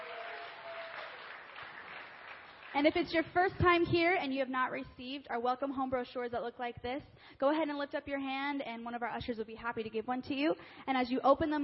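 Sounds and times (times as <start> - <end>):
City Church congregation applauding first-time guests: 0.0 - 3.1
speech: 2.8 - 11.6.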